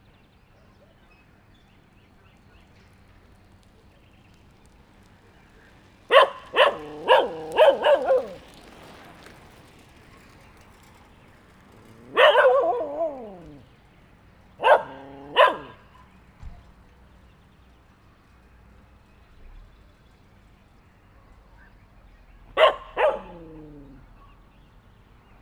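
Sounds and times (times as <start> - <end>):
dog barking at a cyclist in Hortobagy: 6.1 - 8.5, 11.9 - 13.6, 14.6 - 16.1, 22.6 - 24.4.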